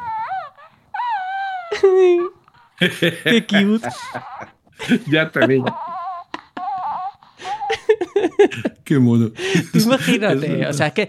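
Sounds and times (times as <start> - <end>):
electronic baby toy character doll cooing when pressed: 0.0 - 1.8, 5.4 - 7.2
speech: 2.0 - 5.8, 8.5 - 11.0
laughter: 2.8 - 6.0, 7.4 - 8.8, 9.4 - 10.5.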